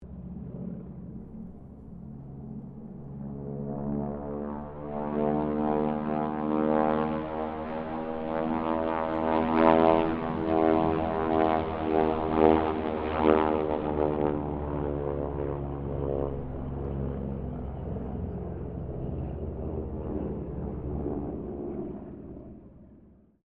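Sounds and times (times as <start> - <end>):
Harvard squadron aircraft pass: 0.0 - 23.4.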